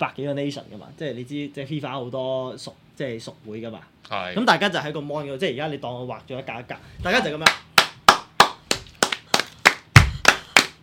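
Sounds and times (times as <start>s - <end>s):
speech: 0.0s - 7.7s
single person's hand claps imitating applause: 7.4s - 10.8s.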